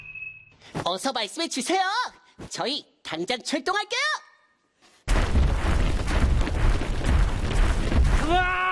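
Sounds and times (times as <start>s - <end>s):
speech: 0.8s - 4.2s
clattering thumping footsteps: 5.1s - 8.6s.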